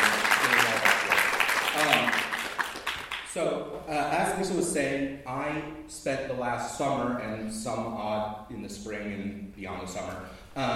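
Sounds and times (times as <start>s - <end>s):
crowd clapping: 0.0s - 3.3s
speech: 3.4s - 10.7s.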